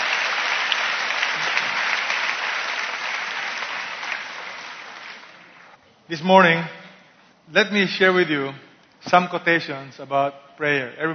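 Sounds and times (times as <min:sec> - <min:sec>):
audience clapping: 0:00.0 - 0:05.8
speech: 0:06.1 - 0:06.8, 0:07.5 - 0:11.1.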